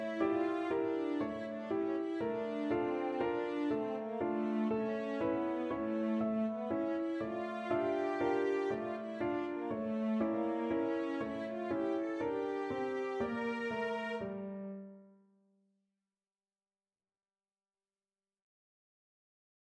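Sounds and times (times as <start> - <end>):
cello sonata: 0.0 - 15.0.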